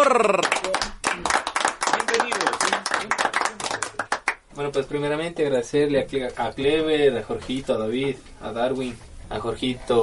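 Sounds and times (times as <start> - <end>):
speech: 0.0 - 0.6, 4.6 - 10.0
audience applause: 0.2 - 4.4.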